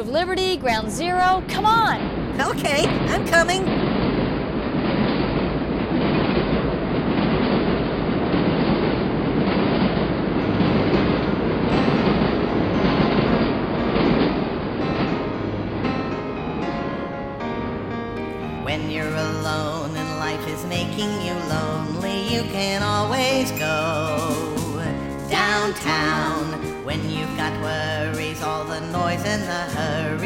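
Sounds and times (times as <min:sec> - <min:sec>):
speech: 0:00.0 - 0:04.0
number one subway train running: 0:00.0 - 0:30.2.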